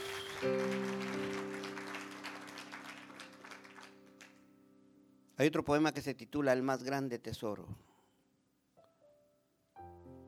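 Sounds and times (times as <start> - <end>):
crowd applause: 0.0 - 4.4
speech: 0.4 - 0.9, 5.4 - 7.9.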